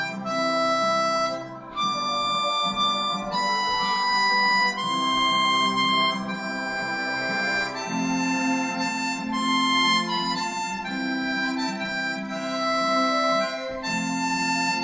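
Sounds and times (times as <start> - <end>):
harmonica playing a Christmas carol in C: 0.0 - 14.8.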